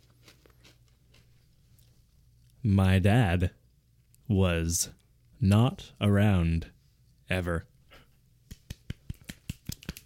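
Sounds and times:
speech: 2.6s - 3.6s, 4.3s - 7.7s
finger snapping: 8.5s - 10.0s.

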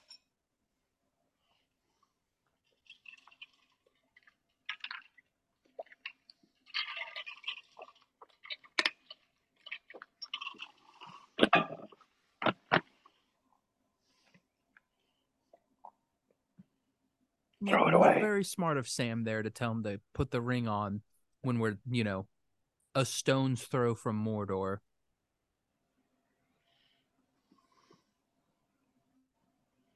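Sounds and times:
chewing a candy bar: 2.7s - 11.6s
speech: 17.6s - 22.3s, 22.9s - 24.9s.

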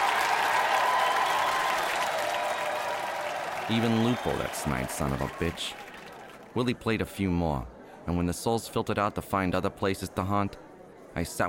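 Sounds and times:
crowd applauding: 0.0s - 6.5s
speech: 3.7s - 5.8s, 6.6s - 11.4s.

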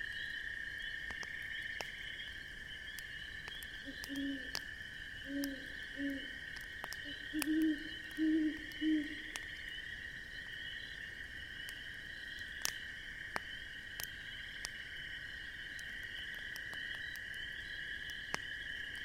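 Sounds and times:
fire crackling: 0.0s - 19.0s
insect drone: 0.0s - 19.0s
owl hooting: 3.8s - 4.6s, 5.2s - 6.4s, 7.0s - 9.3s.

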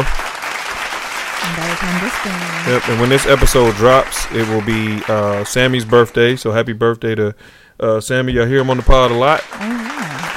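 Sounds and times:
applause: 0.0s - 6.2s, 8.6s - 10.3s
speech: 1.5s - 9.8s.

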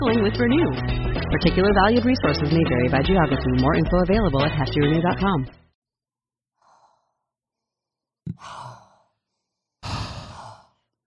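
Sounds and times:
speech: 0.1s - 5.6s
person sniffing a candle: 8.3s - 10.9s.

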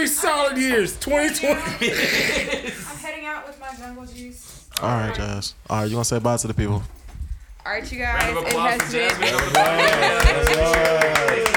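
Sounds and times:
speech: 0.0s - 7.0s, 7.6s - 11.5s
laughter: 1.4s - 3.1s, 8.6s - 11.5s
applause sound effect: 8.2s - 11.5s.

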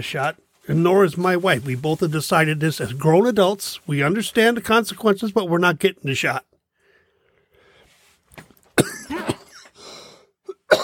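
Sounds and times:
speech: 0.0s - 6.5s
smoker coughing in rough hacking bursts: 8.8s - 9.8s, 10.5s - 10.8s
throat clearing: 8.8s - 9.8s, 10.5s - 10.8s.

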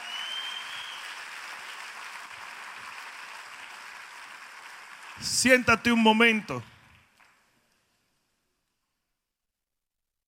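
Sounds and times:
loud audience applause: 0.0s - 7.4s
speech: 5.2s - 6.7s.

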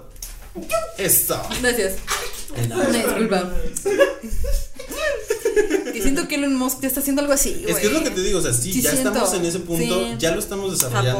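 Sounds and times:
speech: 0.6s - 4.7s, 5.6s - 11.1s
sneeze: 2.1s - 2.5s
laughter: 2.1s - 6.5s.

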